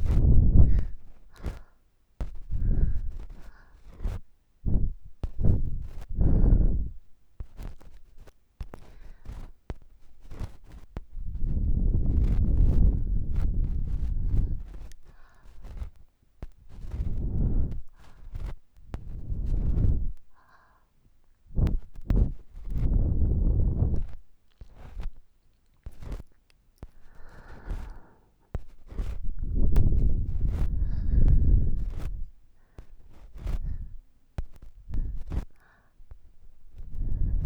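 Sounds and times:
ear blowing left and right: 0.0 - 1.6, 2.4 - 7.1, 11.2 - 15.8, 16.7 - 20.3, 21.5 - 25.1, 28.8 - 34.0, 34.6 - 37.4
ear cleaning sounds: 0.0 - 20.5, 21.5 - 37.4.

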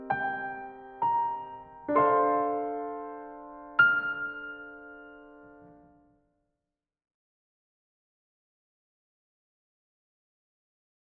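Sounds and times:
piano: 0.0 - 6.4.

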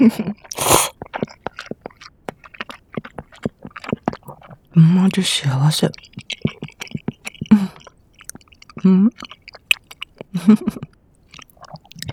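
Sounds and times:
speech: 0.0 - 0.9, 4.8 - 6.1, 8.8 - 9.3, 10.4 - 10.8
mouth smacking: 0.0 - 12.1
person chewing food with a runny soft-cooked egg: 0.0 - 12.1.

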